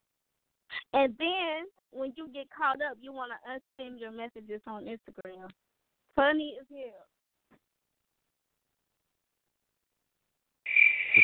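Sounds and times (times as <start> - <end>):
speech: 0.9 - 7.6
crickets chirping: 10.7 - 11.2.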